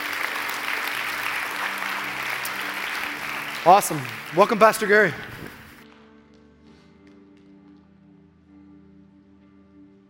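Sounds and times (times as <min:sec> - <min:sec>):
church congregation applauding to welcome new members: 0:00.0 - 0:05.8
speech: 0:03.6 - 0:05.3.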